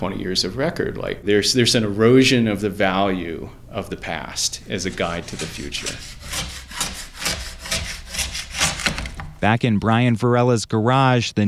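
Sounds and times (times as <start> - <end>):
speech: 0.0 - 6.5, 9.4 - 11.4
plastic scraper scraping excess wax off skis in a home garage: 4.9 - 9.3.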